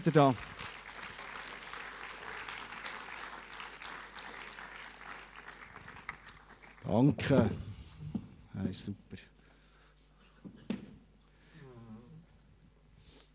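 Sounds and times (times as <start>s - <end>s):
speech: 0.0s - 0.5s, 6.9s - 7.7s, 8.6s - 9.3s
crowd applause: 0.0s - 7.0s.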